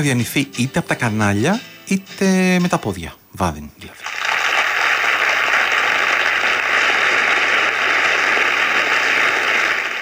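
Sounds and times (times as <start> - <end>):
speech: 0.0 - 4.1
audience applause: 4.0 - 9.9.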